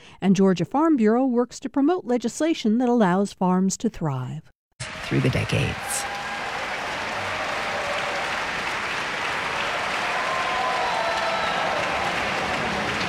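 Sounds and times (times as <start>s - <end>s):
speech: 0.2s - 6.2s
Atlanta concert audience applauding for an encore: 4.8s - 13.0s.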